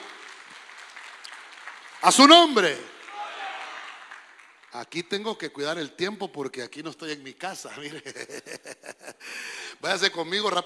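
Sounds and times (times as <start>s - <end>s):
audience clapping hands: 0.0s - 5.6s
speech: 2.0s - 2.9s, 4.7s - 10.6s
laughter: 7.8s - 9.3s.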